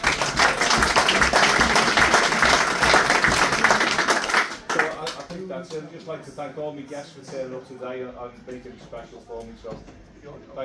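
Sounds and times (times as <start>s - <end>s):
round of applause from guests: 0.0s - 5.5s
speech: 6.1s - 10.6s.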